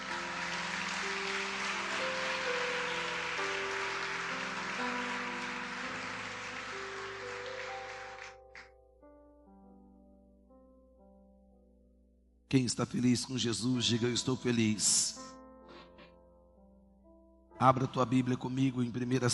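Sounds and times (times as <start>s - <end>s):
audience applause: 0.0s - 8.6s
sustained organ or keyboard chords: 0.0s - 9.8s
speech: 12.5s - 15.3s, 17.6s - 19.3s.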